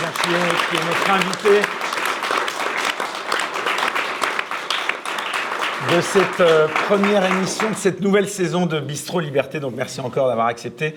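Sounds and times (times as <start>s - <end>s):
audience applause: 0.0s - 7.8s
speech: 0.3s - 1.8s, 5.9s - 10.9s.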